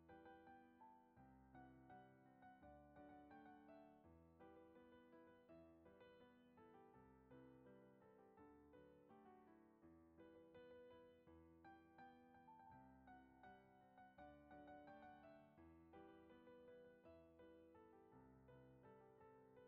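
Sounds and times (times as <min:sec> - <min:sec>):
piano music: 0:00.1 - 0:19.6.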